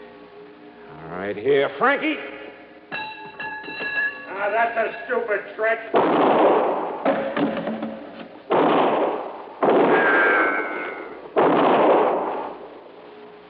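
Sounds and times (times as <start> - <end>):
speech: 1.2 - 2.3, 4.4 - 6.6
heavy gunshots in a radio drama shootout near a warehouse: 5.9 - 7.8, 8.5 - 12.7.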